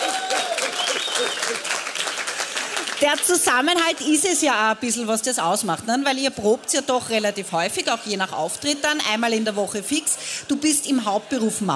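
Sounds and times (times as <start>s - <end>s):
audience clapping for a local music band: 0.0s - 4.3s
speech: 3.0s - 11.7s.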